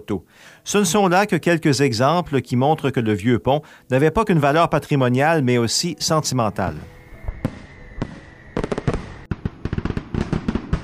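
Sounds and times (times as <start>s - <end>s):
speech: 0.0s - 7.6s
fireworks bursting: 6.7s - 10.8s.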